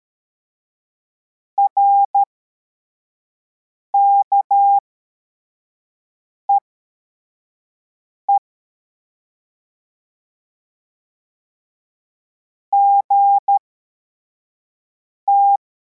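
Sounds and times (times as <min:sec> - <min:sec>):
CW morse code beeps: 0:01.6 - 0:02.3, 0:03.9 - 0:04.8, 0:12.7 - 0:13.6, 0:15.3 - 0:15.6.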